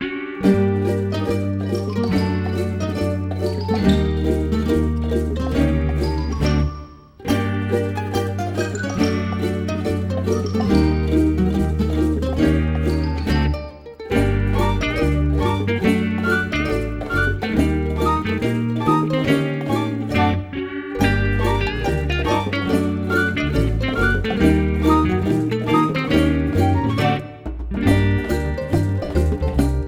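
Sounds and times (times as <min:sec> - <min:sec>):
user interface music: 0:00.0 - 0:29.7.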